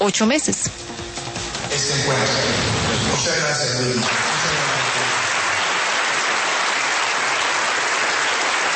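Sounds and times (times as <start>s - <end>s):
speech: 0.0s - 1.0s, 1.8s - 5.1s
audience applause: 2.1s - 8.7s.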